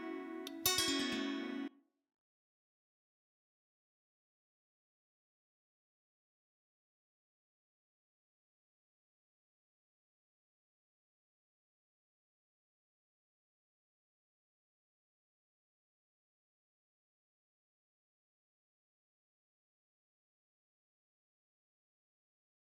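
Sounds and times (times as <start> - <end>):
five-string kantele plucked in a pentatonic melody: 0.0 - 1.7.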